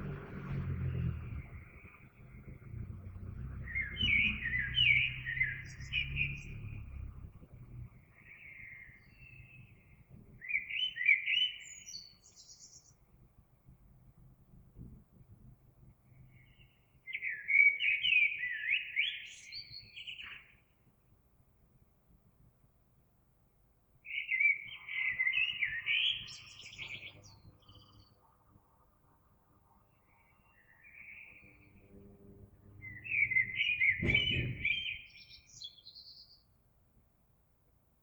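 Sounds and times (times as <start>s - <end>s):
low rumbling background: 0.0s - 10.4s, 31.3s - 35.0s
Eurasian blackbird singing: 0.8s - 13.0s, 16.3s - 20.6s, 24.1s - 28.2s, 30.0s - 36.5s
loud thump: 32.8s - 35.0s.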